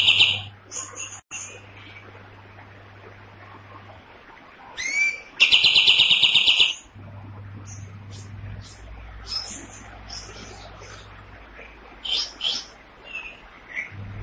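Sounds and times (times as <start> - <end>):
cream-vented bulbul rattling song: 0.0 - 1.6, 4.8 - 6.9, 7.6 - 11.2, 12.0 - 14.0.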